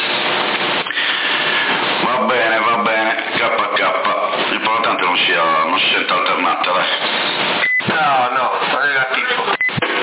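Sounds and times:
power supply cooling fan whirring: 0.0s - 10.0s.

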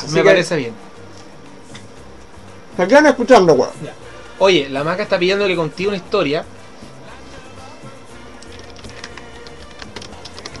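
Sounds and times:
speech: 0.1s - 0.9s, 2.8s - 6.6s
typing on a notebook computer keyboard: 8.4s - 10.5s.

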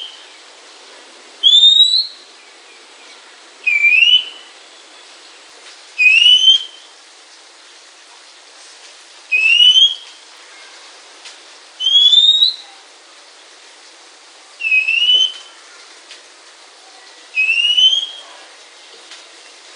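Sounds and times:
faint background hiss: 0.0s - 19.7s
Oriental magpie-robin calls: 1.4s - 2.2s, 3.6s - 4.5s, 6.0s - 6.9s, 9.3s - 10.1s, 11.8s - 12.7s, 14.6s - 15.5s, 17.4s - 18.2s.

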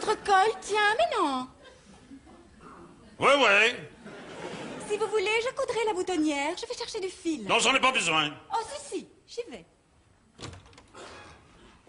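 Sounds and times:
speech: 0.1s - 1.6s, 3.2s - 3.9s, 4.9s - 9.7s
door opening or closing: 10.4s - 11.5s.

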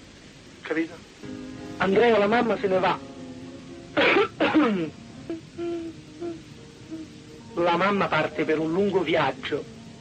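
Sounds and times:
speech: 0.7s - 3.1s, 4.0s - 5.0s, 7.6s - 9.7s
cough: 4.0s - 4.9s.

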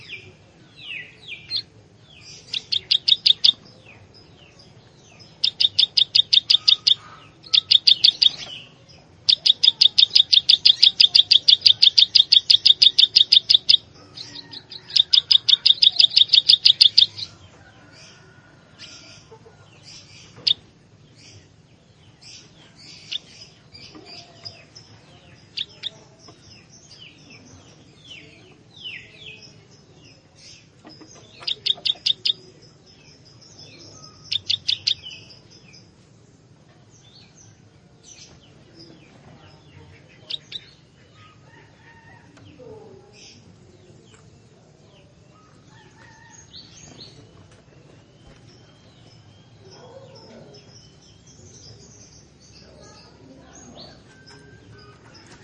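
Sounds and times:
Plain Prinia ticking notes: 2.4s - 3.7s, 5.3s - 17.3s, 30.9s - 32.4s, 34.2s - 35.3s.

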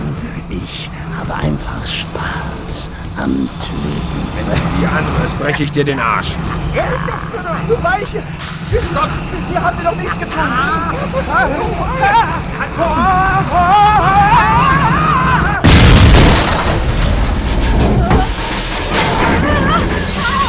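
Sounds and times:
laughter: 0.0s - 15.7s, 19.0s - 20.4s
speech: 3.2s - 15.0s
agitated voices shouting: 4.2s - 15.7s, 19.3s - 20.4s
heavy vehicle smashing through a prison wall: 15.4s - 20.4s
debris crumbling and shattering: 15.6s - 20.4s.

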